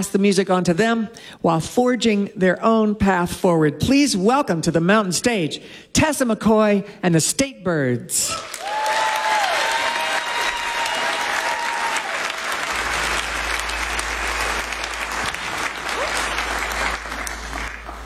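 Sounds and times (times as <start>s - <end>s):
speech: 0.0s - 8.8s
audience applause: 8.3s - 18.0s.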